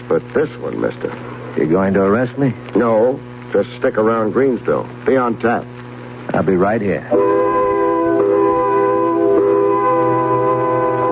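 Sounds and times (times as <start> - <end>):
speech: 0.1 - 5.7, 6.3 - 7.4
factory quitting-time whistle: 7.1 - 11.0.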